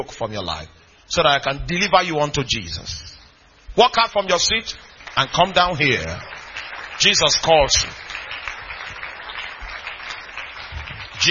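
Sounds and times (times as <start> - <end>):
speech: 0.0 - 3.1, 3.8 - 6.3, 7.0 - 8.0
congregation clapping at an evangelistic church service during an altar call: 4.4 - 11.3.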